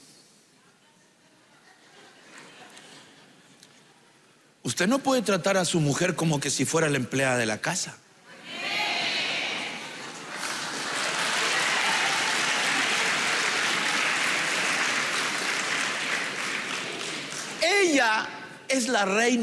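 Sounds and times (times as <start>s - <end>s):
speech: 4.7s - 8.0s, 19.0s - 19.4s
audience applause: 9.2s - 17.9s.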